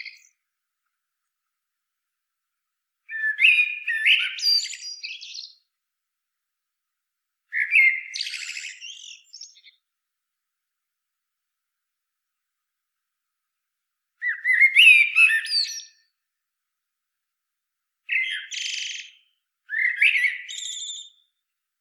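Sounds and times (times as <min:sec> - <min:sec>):
common blackbird song: 0:00.0 - 0:00.4, 0:03.0 - 0:05.7, 0:07.5 - 0:09.9, 0:14.2 - 0:16.2, 0:18.1 - 0:21.5.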